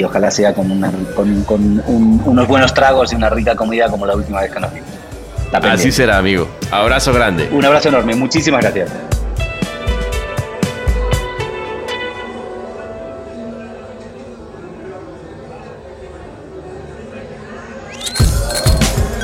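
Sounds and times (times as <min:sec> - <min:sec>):
speech: 0:00.0 - 0:09.1
steady murmur of crowd chatter in a busy bar: 0:00.0 - 0:19.2
bright glass clinks in a busy bar: 0:18.0 - 0:19.2.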